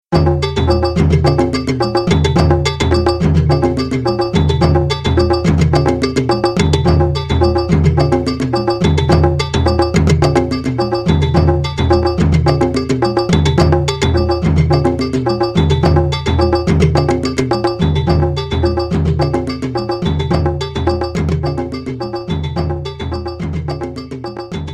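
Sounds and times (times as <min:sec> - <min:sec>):
rumba music: 0:00.1 - 0:24.7.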